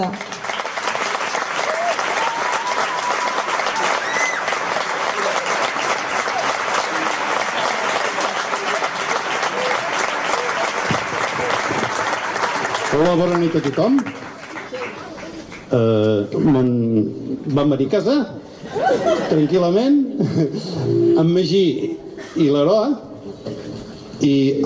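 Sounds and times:
speech: 0:00.0 - 0:00.3, 0:13.0 - 0:14.2, 0:15.7 - 0:23.1, 0:24.2 - 0:24.6
loud audience applause: 0:00.0 - 0:15.8
laughter: 0:18.6 - 0:21.1.

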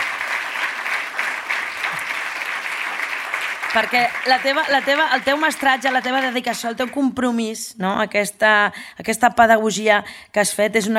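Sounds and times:
audience applause: 0:00.0 - 0:07.0
speech: 0:03.7 - 0:10.9.

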